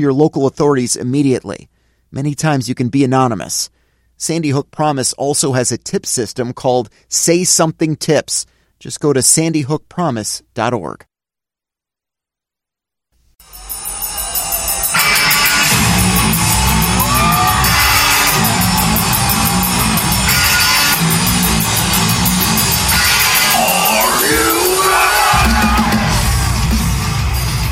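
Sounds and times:
speech: 0.0s - 11.1s
pounding music: 13.4s - 27.7s
crowd cheering at Lollapalooza music festival in downtown Chicago: 13.5s - 27.7s.

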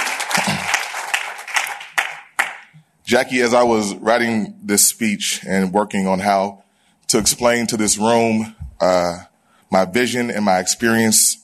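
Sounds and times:
audience applause: 0.0s - 2.7s
speech: 3.1s - 11.4s.

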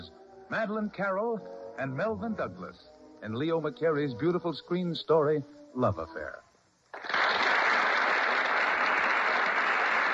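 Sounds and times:
speech: 0.5s - 6.4s
studio audience applause: 6.9s - 10.1s.

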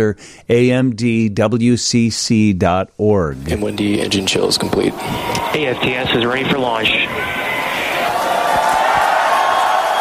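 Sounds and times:
speech: 0.0s - 7.5s
clapping and cheering in the SpaceX control room at Falcon Heavy launch: 5.2s - 10.0s.

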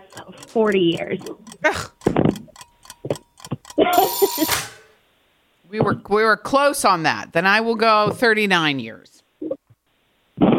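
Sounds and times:
countdown timer ticking: 0.0s - 4.8s
speech: 0.2s - 1.9s, 4.0s - 4.7s, 5.7s - 9.2s.

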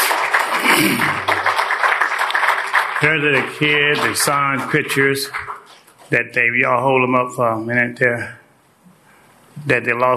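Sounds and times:
audience round of applause for guests asked to stand: 0.0s - 5.8s
speech: 0.8s - 1.3s, 3.0s - 5.5s, 6.1s - 8.4s, 9.6s - 10.1s.

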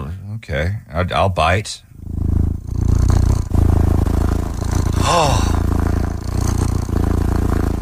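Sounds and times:
speech: 0.4s - 1.9s, 5.1s - 5.5s
cat purring from a website: 1.7s - 7.7s.

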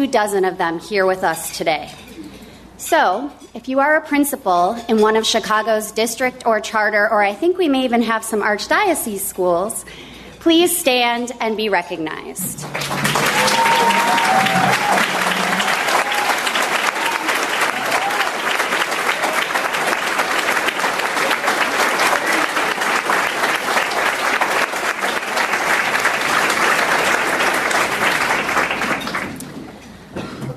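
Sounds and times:
speech: 0.0s - 2.1s, 2.8s - 13.0s
crowd applauding standing principals: 12.5s - 29.7s.

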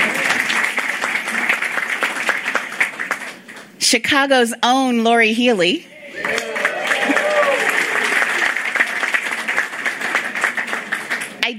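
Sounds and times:
audience applauding: 0.0s - 3.8s, 6.1s - 11.5s
speech: 3.9s - 5.9s.

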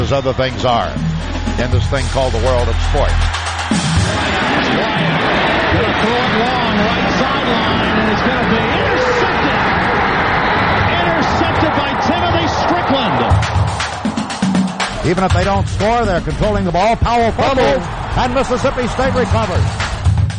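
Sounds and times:
speech: 0.1s - 9.4s, 15.0s - 19.8s
stadium crowd giving a Bronx cheer: 3.3s - 15.3s, 16.6s - 19.8s.

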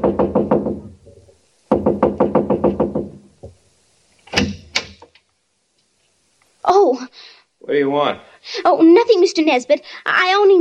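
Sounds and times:
knuckles knocking on a house door: 0.0s - 3.6s
speech: 7.8s - 10.5s.

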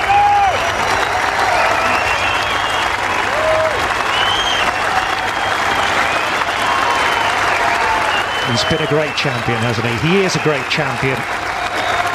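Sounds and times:
golf crowd ovation with applause and cheering: 0.0s - 12.1s
whistles: 1.6s - 3.3s, 4.0s - 9.4s
speech: 8.6s - 11.5s.

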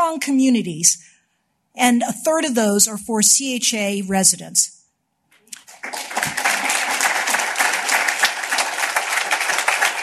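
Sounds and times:
speech: 0.2s - 1.1s, 1.8s - 4.8s
crowd applauding: 5.5s - 10.0s.

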